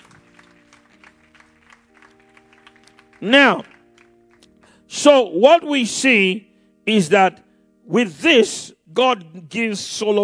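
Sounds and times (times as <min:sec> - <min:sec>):
audience applause: 0:00.0 - 0:04.5
speech: 0:03.2 - 0:03.7, 0:04.9 - 0:10.2.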